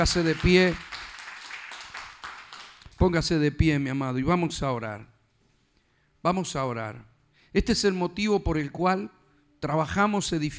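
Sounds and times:
speech: 0.0s - 0.9s, 3.0s - 5.1s, 6.2s - 10.5s
audience applause: 0.0s - 2.8s.

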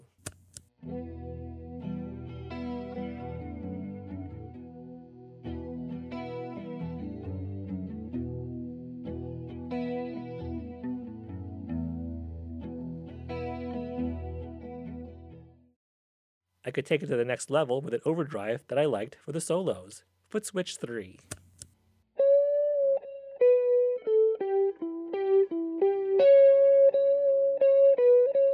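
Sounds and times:
clean electric guitar with chorus effect playing chords and single notes: 0.8s - 15.5s, 22.2s - 28.5s
speech: 16.7s - 21.4s.

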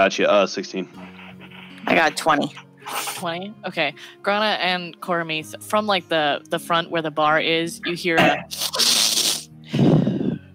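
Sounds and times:
speech: 0.0s - 1.1s, 1.8s - 8.7s
voice imitating loud sniffing: 2.8s - 3.3s, 8.2s - 9.5s.

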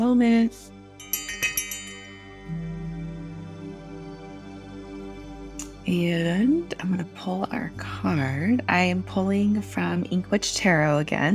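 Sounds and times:
speech: 0.0s - 1.2s, 5.9s - 11.3s
bell ringing: 1.0s - 3.2s.

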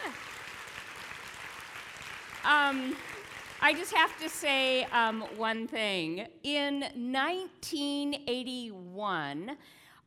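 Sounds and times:
audience applause: 0.0s - 4.7s
speech: 2.4s - 10.0s.

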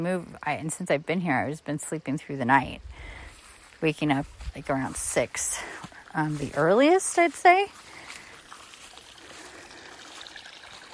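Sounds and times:
speech: 0.0s - 3.2s, 3.8s - 7.9s
water trickling at a garden pond with guppies: 6.0s - 10.9s.

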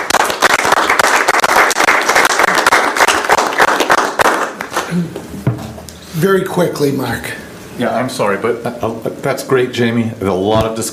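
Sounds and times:
round of applause: 0.0s - 4.9s
speech: 6.2s - 10.9s.

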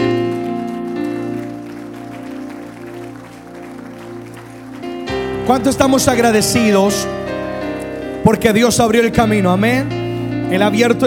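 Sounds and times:
audience clapping: 0.0s - 6.8s
sustained keyboard or organ chords: 0.0s - 11.0s
speech: 5.5s - 7.2s, 8.2s - 11.0s.

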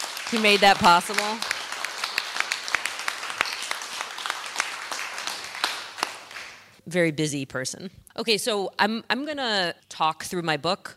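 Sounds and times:
audience round of applause: 0.0s - 6.6s
speech: 0.3s - 1.5s, 6.9s - 10.9s.

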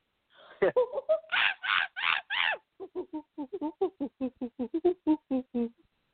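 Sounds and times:
person imitating a monkey: 1.2s - 5.8s.

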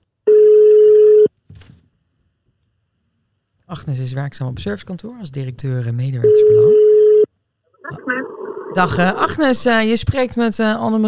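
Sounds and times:
telephone call ringback tone: 0.3s - 1.3s, 6.3s - 7.3s
speech: 3.7s - 6.8s, 7.9s - 11.0s.

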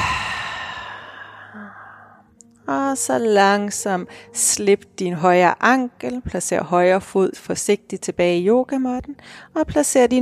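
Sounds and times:
breathing out through the mouth in a half bow yoga pose: 0.0s - 2.3s
speech: 2.7s - 10.2s.

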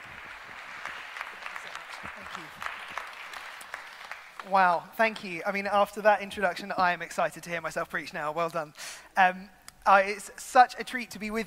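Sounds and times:
crowd applauding: 0.0s - 4.8s
speech: 4.4s - 11.4s.

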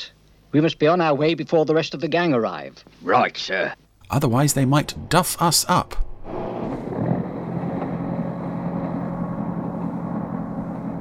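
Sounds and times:
speech: 0.0s - 6.5s
train pulling away from Buffalo's Halt: 4.2s - 11.0s.

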